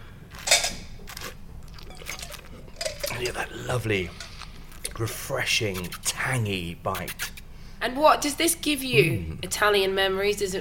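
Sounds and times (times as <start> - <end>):
slurping wine, sucking air across it: 0.1 - 6.2, 6.9 - 7.4
speech: 3.2 - 4.2, 5.0 - 10.6.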